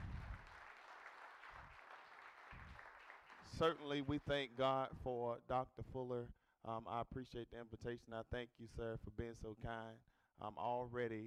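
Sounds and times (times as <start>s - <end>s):
audience clapping hands in praise: 0.0s - 4.7s
speech: 3.4s - 11.2s.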